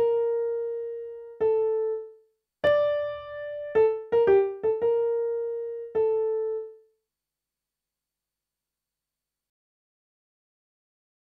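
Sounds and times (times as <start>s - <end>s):
piano: 0.0s - 6.9s.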